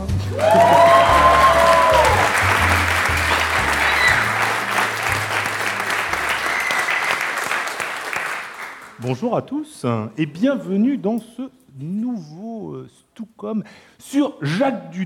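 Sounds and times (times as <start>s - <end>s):
low rhythmic musical backing: 0.0s - 9.0s
loud applause from a large audience: 0.3s - 9.1s
speech: 9.1s - 15.0s.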